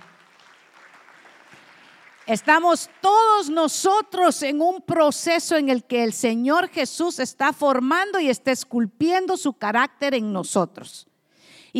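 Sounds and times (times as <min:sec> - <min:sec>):
audience clapping: 0:00.0 - 0:03.6
speech: 0:02.3 - 0:11.1.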